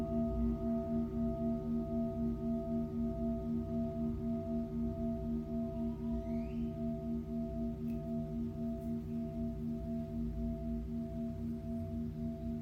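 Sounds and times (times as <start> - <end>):
Tibetan singing bowl ringing: 0.0 - 12.6
faint rising chirp: 5.5 - 7.4.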